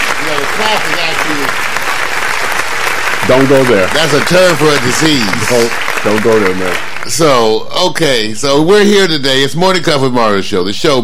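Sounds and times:
applause sound effect: 0.0 - 7.4
speech: 0.6 - 1.0, 3.3 - 11.0.

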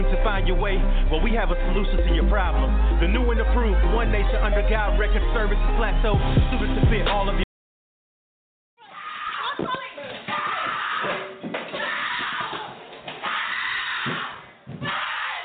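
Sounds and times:
speech: 0.1 - 7.5, 9.6 - 9.8
several people screaming and shouting in a violent domestic attack: 8.8 - 15.4
scuffling: 9.2 - 15.4.

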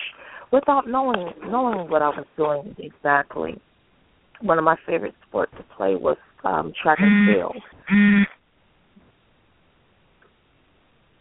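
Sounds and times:
speech: 0.5 - 3.7, 4.4 - 8.2
buzzer: 7.0 - 8.4.

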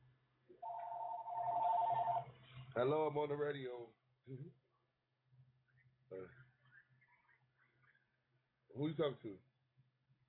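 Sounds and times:
office telephone ringing: 0.6 - 2.3
speech: 2.8 - 4.6, 6.1 - 6.5, 8.8 - 9.5.

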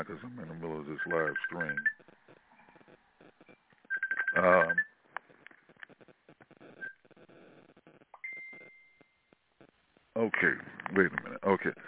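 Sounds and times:
speech: 0.0 - 2.0, 4.4 - 4.8, 10.2 - 11.8
telephone ringing: 1.0 - 2.1, 3.9 - 5.0.

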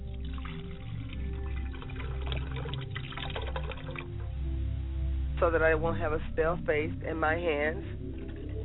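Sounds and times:
water being poured as a libation: 0.0 - 4.3
speech: 5.4 - 8.1.

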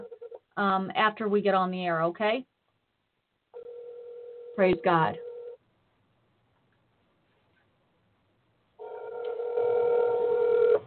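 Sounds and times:
speech: 0.6 - 2.5, 4.6 - 5.3
phone call ringback tone: 3.6 - 5.6, 8.8 - 10.8.

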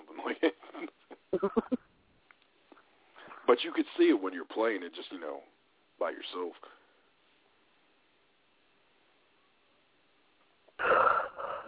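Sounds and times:
speech: 1.4 - 1.8, 3.6 - 6.8
person yawning: 10.8 - 11.6.

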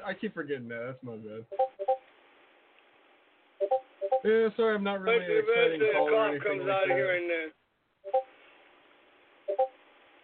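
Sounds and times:
faint steady hiss: 0.0 - 10.2
speech: 0.1 - 1.7, 3.6 - 8.3
Discord notification beeping: 1.5 - 2.0, 8.1 - 8.3, 9.5 - 9.7.

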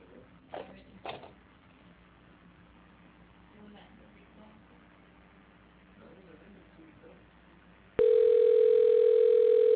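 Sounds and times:
telephone dial tone: 8.0 - 9.7.

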